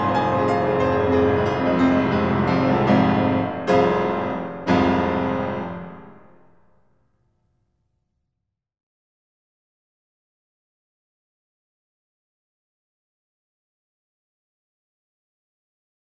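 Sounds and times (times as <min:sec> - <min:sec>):
piano sonata: 0:00.0 - 0:06.7.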